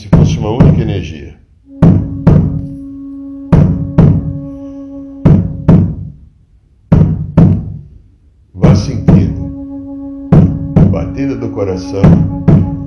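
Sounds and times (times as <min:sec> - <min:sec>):
steady drum beat: 0:00.0 - 0:01.1, 0:01.7 - 0:02.8, 0:03.4 - 0:04.5, 0:05.1 - 0:06.3, 0:06.9 - 0:07.9, 0:08.6 - 0:12.8
speech: 0:00.4 - 0:01.4.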